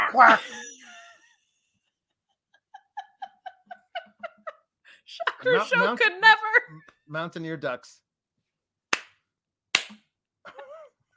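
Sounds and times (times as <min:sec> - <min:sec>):
speech: 0:00.1 - 0:00.7, 0:05.2 - 0:08.0
laughter: 0:02.3 - 0:06.0
person slapping themself hard: 0:08.9 - 0:10.1.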